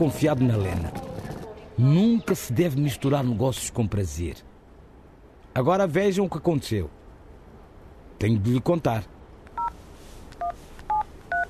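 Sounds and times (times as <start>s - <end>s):
speech: 0.0s - 1.0s, 1.8s - 4.5s, 5.6s - 7.0s, 8.2s - 9.1s
faint hiss: 0.0s - 11.4s
telephone touch-tone keypad dialling beeps: 10.4s - 11.4s.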